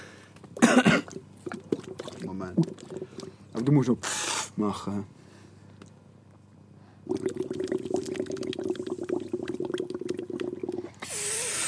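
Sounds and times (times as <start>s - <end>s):
bubbling water: 0.5s - 3.7s, 7.0s - 11.0s
speech: 2.4s - 2.8s, 3.6s - 5.2s.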